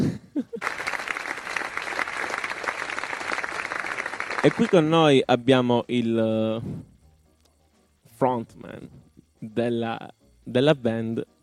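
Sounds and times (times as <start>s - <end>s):
audience applauding as a band is introduced at a live event: 0.6s - 5.0s
speech: 4.4s - 6.9s, 8.2s - 11.3s.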